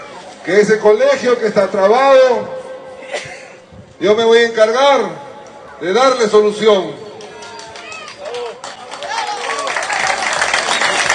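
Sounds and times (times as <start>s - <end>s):
speech: 0.4s - 3.3s, 4.0s - 5.2s, 5.8s - 7.0s
crowd applause: 7.2s - 11.1s.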